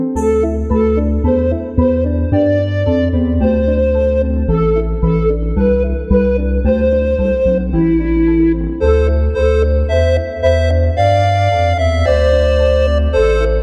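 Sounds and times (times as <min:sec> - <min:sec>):
flutes: 0:00.2 - 0:13.6.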